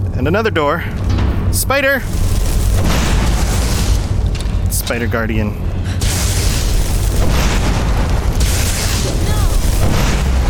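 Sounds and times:
speech: 0:00.2 - 0:03.0, 0:04.7 - 0:05.7
video game fireball spell explosion: 0:02.0 - 0:04.7, 0:06.0 - 0:10.4.

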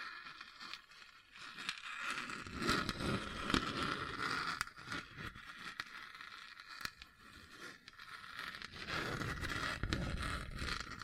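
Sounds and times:
scratching on a hard bumpy surface: 0:00.0 - 0:11.0.

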